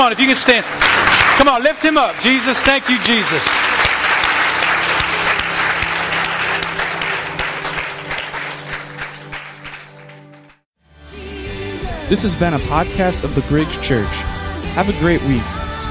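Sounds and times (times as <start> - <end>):
speech: 0.0 - 3.9, 12.1 - 15.8
audience applause: 0.0 - 10.6.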